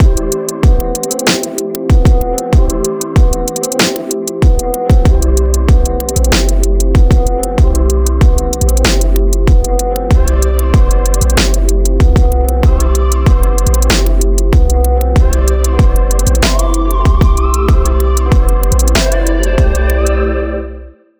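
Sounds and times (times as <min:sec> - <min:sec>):
trap rap music: 0:00.0 - 0:20.3.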